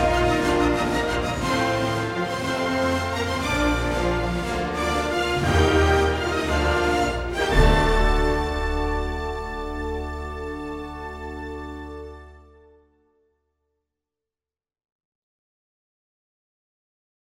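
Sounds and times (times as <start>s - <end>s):
heroic background music: 0.0s - 12.9s.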